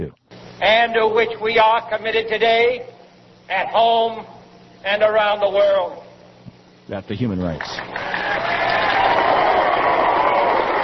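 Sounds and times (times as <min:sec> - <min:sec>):
speech: 0:00.0 - 0:02.9, 0:03.5 - 0:06.0, 0:06.9 - 0:08.8
applause in archival speech recording: 0:07.6 - 0:10.8.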